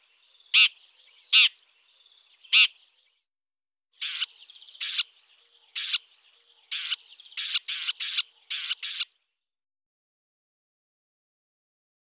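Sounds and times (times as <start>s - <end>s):
red-backed shrike singing: 0.0s - 3.3s, 4.0s - 9.4s.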